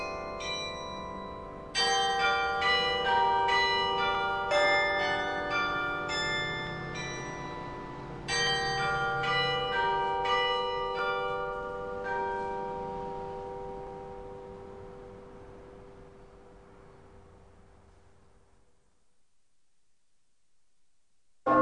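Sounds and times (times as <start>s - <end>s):
carillon bells: 0.0s - 17.3s.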